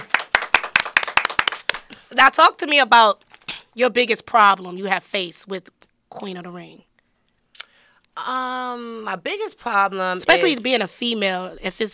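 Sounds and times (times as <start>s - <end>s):
clapping applause: 0.0s - 2.0s
speech: 2.1s - 6.9s, 8.2s - 11.9s.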